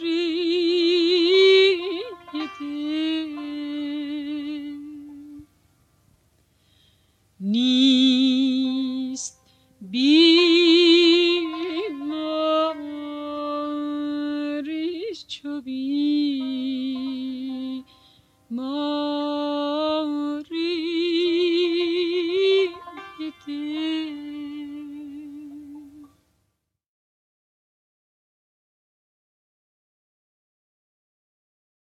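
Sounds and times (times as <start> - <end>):
person singing: 0.0 - 5.5, 7.4 - 17.9, 18.5 - 26.1
santur playing a dastgah: 1.0 - 5.4, 10.2 - 15.0, 16.2 - 18.2, 20.9 - 25.9.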